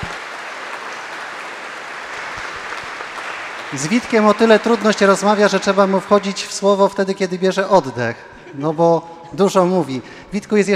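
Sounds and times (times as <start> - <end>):
audience applause: 0.0 - 7.0
speech: 3.7 - 10.7.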